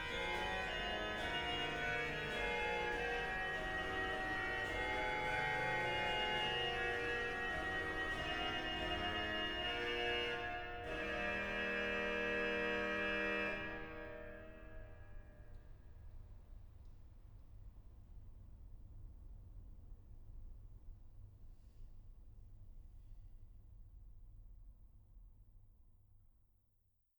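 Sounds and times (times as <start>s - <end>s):
organ playing chorale preludes: 0.0s - 14.8s.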